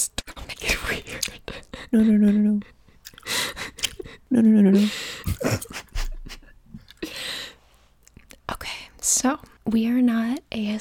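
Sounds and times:
gum chewing with wet sticky smacks: 0.2 - 1.9, 2.9 - 4.2, 5.2 - 6.0, 6.7 - 7.1, 8.0 - 8.4
speech: 1.9 - 2.8, 4.3 - 5.8, 9.2 - 10.7.

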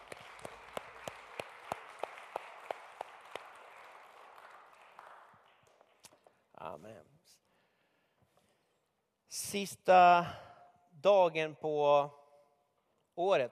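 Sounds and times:
audience applause: 0.0 - 6.1
speech: 9.5 - 10.4, 11.0 - 12.2, 13.2 - 13.4.

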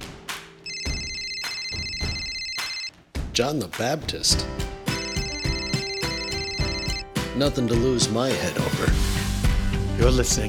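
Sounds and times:
telephone ringing: 0.6 - 2.9, 4.9 - 7.2
speech: 3.4 - 4.7, 7.4 - 9.2, 10.0 - 10.4.

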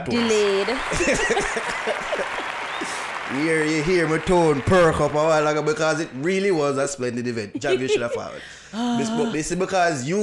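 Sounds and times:
speech: 0.0 - 2.2, 3.3 - 10.2
round of applause: 0.0 - 6.8
laughter: 0.4 - 3.0, 7.2 - 9.6.

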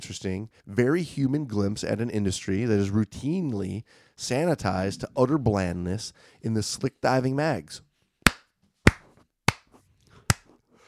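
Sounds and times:
speech: 0.0 - 7.9
slow hand claps: 8.3 - 9.7.

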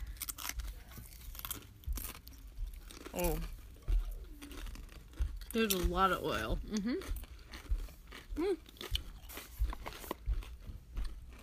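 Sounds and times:
chips snapping and being chewed: 0.0 - 11.4
speech: 3.2 - 3.6, 5.5 - 7.2, 8.4 - 8.7.

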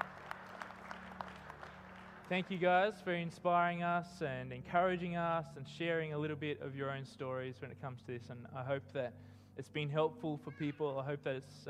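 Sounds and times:
audience applause: 0.0 - 3.0
speech: 2.3 - 11.6.

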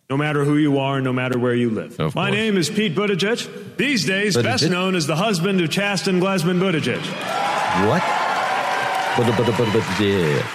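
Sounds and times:
speech: 0.1 - 8.2, 9.2 - 10.5
audience cheering and applauding: 6.6 - 10.5.

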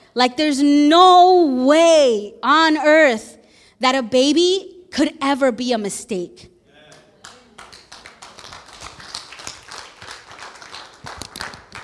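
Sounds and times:
speech: 0.2 - 6.5
audience clapping: 6.8 - 11.8.

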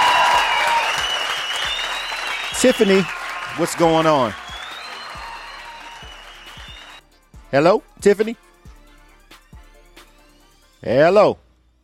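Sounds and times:
audience applause welcoming a singer: 0.0 - 7.0
speech: 2.6 - 4.4, 7.5 - 8.4, 10.8 - 11.4.

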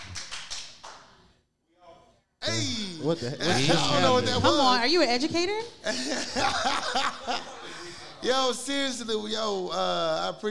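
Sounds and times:
hand claps: 0.0 - 1.3
speech: 2.5 - 7.6, 8.2 - 10.4
laughter: 3.4 - 4.8, 5.8 - 9.0.

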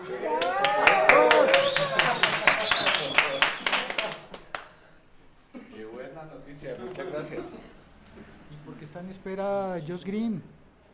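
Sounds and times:
people clapping: 0.0 - 4.8
speech: 9.4 - 10.6.

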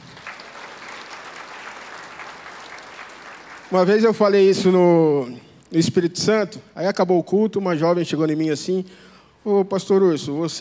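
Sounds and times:
audience applauding: 0.0 - 4.4
speech: 3.7 - 10.5.

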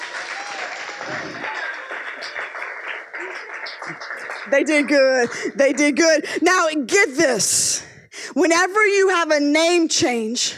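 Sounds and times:
audience applause: 0.0 - 5.8
speech: 4.5 - 10.5.

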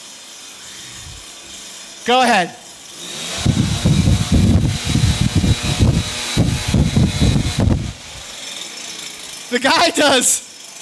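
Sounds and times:
leaf blower blowing: 0.4 - 2.0, 2.8 - 9.5
speech: 2.1 - 3.2, 9.5 - 10.5.

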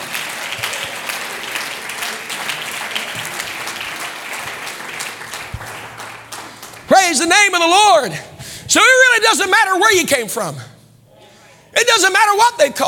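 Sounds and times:
audience clapping hands: 0.0 - 8.1
speech: 7.1 - 10.7, 11.8 - 12.8.

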